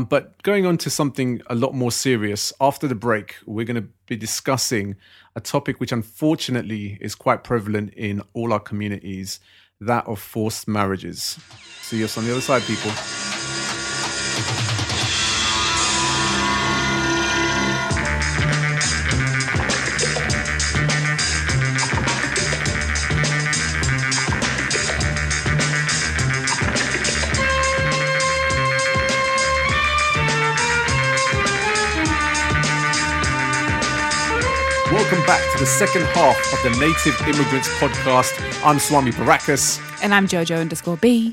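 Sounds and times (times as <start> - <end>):
speech: 0.0 - 13.2, 14.4 - 14.7, 35.6 - 41.3
Indian film theme music: 11.5 - 41.3.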